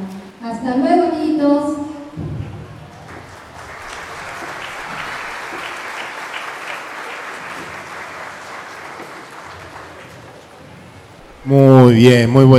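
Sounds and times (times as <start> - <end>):
speech: 0.5 - 1.7, 11.5 - 12.5
audience applause: 2.8 - 11.4.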